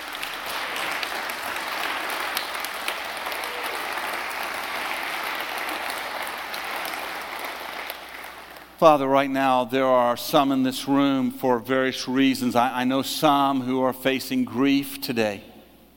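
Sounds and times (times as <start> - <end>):
audience clapping: 0.0 - 8.8
speech: 8.8 - 15.5.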